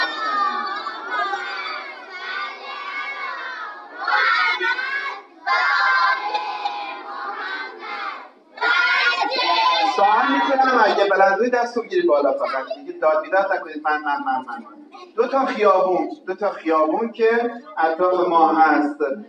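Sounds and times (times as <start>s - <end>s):
laughter: 0.0s - 3.2s, 9.3s - 17.0s
crowd reciting salawat in unison in remembrance of the martyrs: 0.0s - 11.1s
speech: 11.0s - 19.2s.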